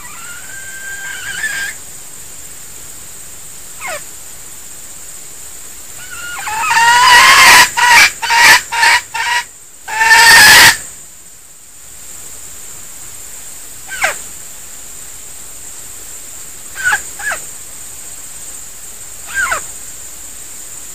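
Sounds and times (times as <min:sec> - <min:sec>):
female junglefowl decoy bird squeaking and clucking: 0:00.0 - 0:01.8, 0:06.0 - 0:10.8, 0:13.9 - 0:14.2, 0:16.7 - 0:17.4, 0:19.3 - 0:19.7.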